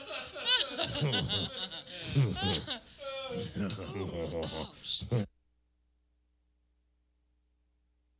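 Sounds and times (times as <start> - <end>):
chain of laughter: 0.0 - 4.5.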